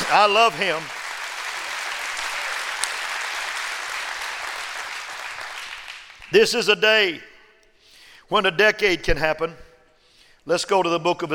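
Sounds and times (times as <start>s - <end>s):
audience applause: 0.0s - 6.4s
speech: 0.1s - 1.0s, 6.3s - 7.3s, 8.3s - 9.6s, 10.4s - 11.3s.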